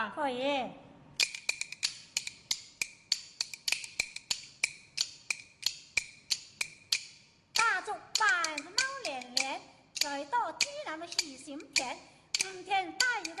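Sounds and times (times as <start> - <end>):
speech: 0.0 - 0.9, 10.2 - 13.3
bamboo kuaiban clappers clacking a lively rhythm: 1.2 - 13.3.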